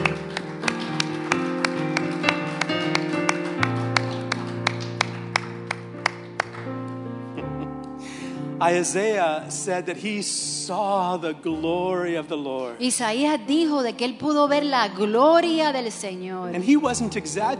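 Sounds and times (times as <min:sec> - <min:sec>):
audience clapping: 0:00.0 - 0:07.0
speech: 0:08.6 - 0:17.5.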